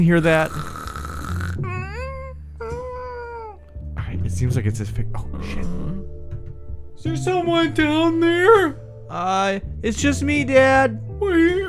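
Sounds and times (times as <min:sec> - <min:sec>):
speech: 0:00.0 - 0:00.7, 0:04.4 - 0:05.7, 0:07.0 - 0:11.5
cartoonish snoring: 0:00.0 - 0:03.7.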